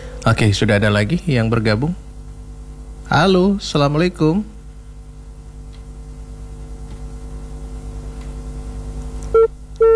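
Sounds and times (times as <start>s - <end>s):
low hum: 0.0s - 9.9s
speech: 0.2s - 2.1s, 3.1s - 4.5s
busy signal beeps after a dropped phone call: 9.4s - 9.9s.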